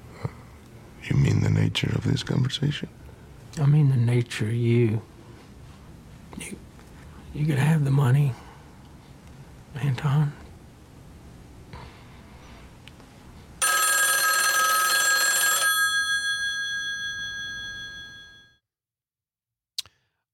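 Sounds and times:
speech: 0:01.7 - 0:03.0, 0:03.6 - 0:05.1, 0:07.4 - 0:08.4, 0:09.8 - 0:10.4
telephone bell ringing: 0:13.6 - 0:18.6.

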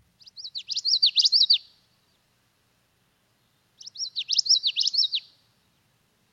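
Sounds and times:
common yellowthroat singing: 0:00.2 - 0:02.2, 0:03.4 - 0:05.8.

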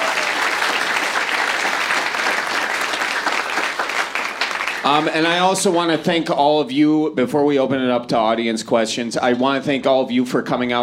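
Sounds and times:
audience applause: 0:00.0 - 0:06.0
speech: 0:04.8 - 0:10.8.

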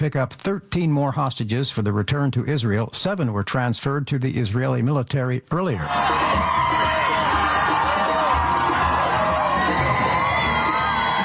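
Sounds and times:
speech: 0:00.0 - 0:07.2
happy crowds cheering: 0:05.8 - 0:11.2.

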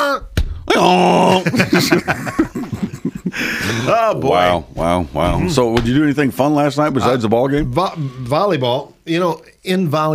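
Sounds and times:
speech: 0:00.2 - 0:10.1
person imitating a donkey's bray: 0:00.7 - 0:01.5
laughter: 0:00.8 - 0:04.6.

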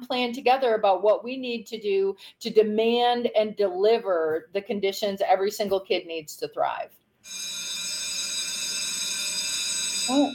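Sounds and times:
speech: 0:00.1 - 0:07.6, 0:10.1 - 0:10.3
bell ringing for segment: 0:07.3 - 0:10.3.

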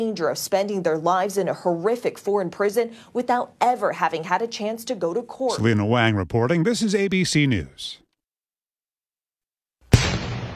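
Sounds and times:
speech: 0:00.0 - 0:08.0
cannon blast from a 21-gun salute by the U.S. Army 101st Field Artillery Regiment: 0:09.9 - 0:10.5.

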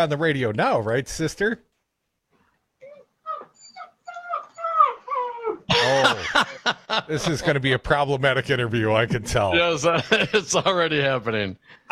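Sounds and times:
speech: 0:00.0 - 0:01.7, 0:05.8 - 0:11.9
dog whimpering and yipping: 0:02.8 - 0:05.7
laughter: 0:05.7 - 0:07.6, 0:09.8 - 0:11.0.

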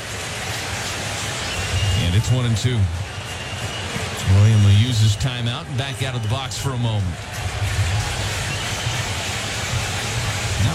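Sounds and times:
baseball stadium crowd roar: 0:00.0 - 0:10.7
speech: 0:02.2 - 0:07.7.

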